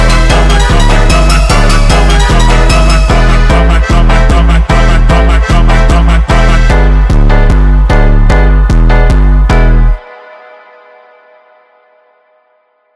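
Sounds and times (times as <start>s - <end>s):
funk music: 0.0s - 10.0s.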